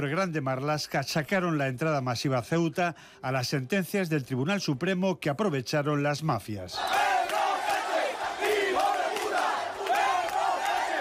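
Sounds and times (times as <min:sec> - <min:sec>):
speech: 0:00.0 - 0:07.2
crowd booing: 0:06.8 - 0:10.9.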